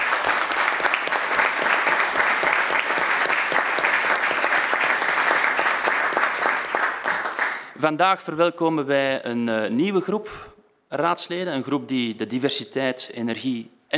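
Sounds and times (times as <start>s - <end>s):
applause: 0.0s - 7.8s
speech: 7.8s - 13.9s.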